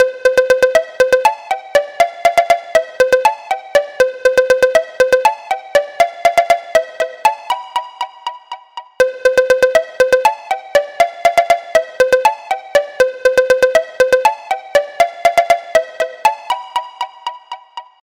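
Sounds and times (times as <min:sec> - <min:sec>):
jolly ringtone: 0:00.0 - 0:18.0.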